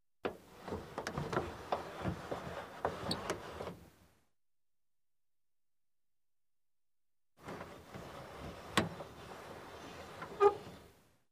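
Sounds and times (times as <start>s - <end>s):
car glass window lowered and raised manually: 0.3s - 3.8s, 7.4s - 11.0s.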